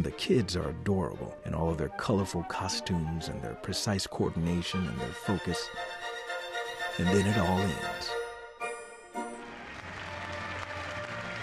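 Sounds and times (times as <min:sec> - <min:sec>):
speech: 0:00.0 - 0:05.9, 0:07.0 - 0:08.2
audience applause after a ballet performance: 0:09.3 - 0:11.4.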